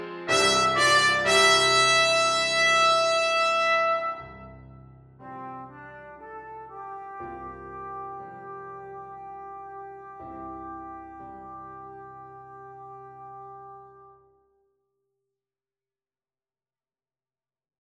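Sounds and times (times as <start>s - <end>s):
trumpet, flugelhorn or cornet playing: 0.3s - 4.6s, 5.2s - 14.3s.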